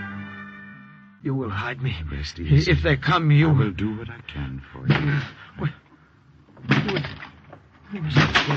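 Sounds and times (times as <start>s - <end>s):
speech: 1.2s - 5.8s, 7.9s - 8.5s
door being broken down: 6.5s - 8.5s.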